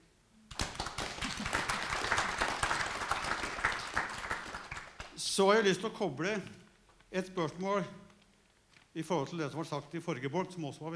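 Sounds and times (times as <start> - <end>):
audience applause: 0.5 - 5.2
speech: 5.4 - 8.0, 9.0 - 10.9.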